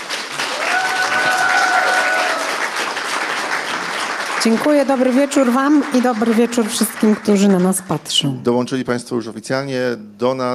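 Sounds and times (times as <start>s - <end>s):
audience applause: 0.0s - 8.1s
speech: 4.4s - 10.5s.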